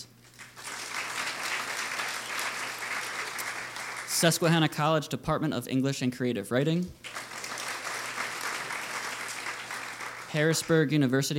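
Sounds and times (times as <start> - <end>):
sustained crowd applause: 0.3 - 4.7, 7.0 - 11.0
speech: 4.2 - 7.2, 10.3 - 11.3.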